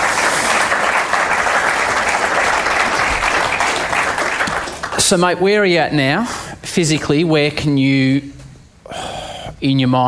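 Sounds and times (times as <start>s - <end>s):
round of applause: 0.0s - 5.3s
speech: 5.1s - 8.4s, 9.6s - 10.0s.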